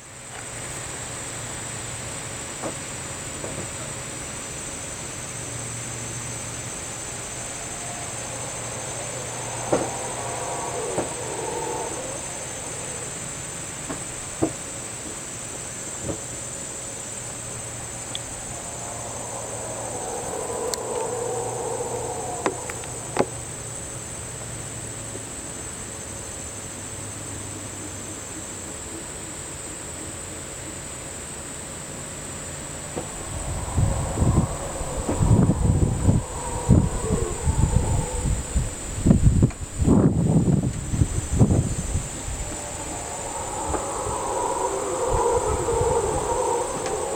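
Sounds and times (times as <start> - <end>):
howler: 4.5 - 24.4, 32.4 - 47.1.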